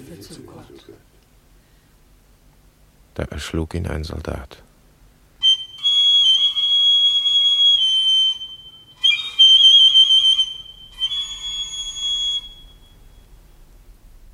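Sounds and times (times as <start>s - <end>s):
speech: 0.1s - 1.2s, 3.2s - 4.7s
shrill pipe whistling: 5.4s - 13.4s.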